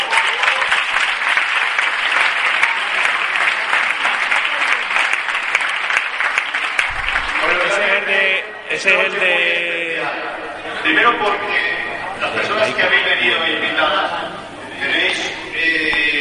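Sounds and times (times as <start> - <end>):
loud audience applause: 0.0 - 9.8
speech: 8.8 - 16.0.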